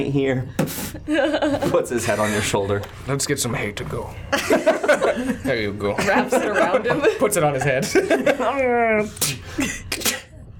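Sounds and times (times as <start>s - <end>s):
speech: 0.0s - 10.1s
laughter: 4.3s - 9.0s
voice imitating sneezes: 9.1s - 10.5s.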